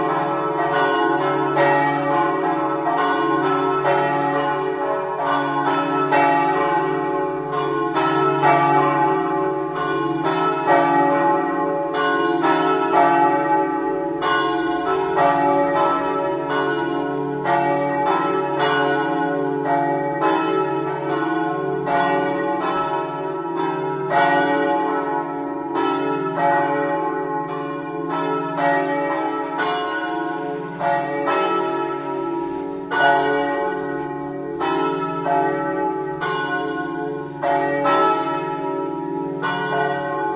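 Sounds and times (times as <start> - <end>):
bells ringing: 0.0 - 40.3.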